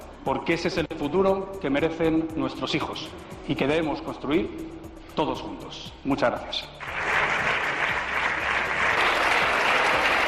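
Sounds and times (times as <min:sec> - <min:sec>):
speech: 0:00.2 - 0:07.1
applause from parliamentary benches: 0:06.8 - 0:10.2.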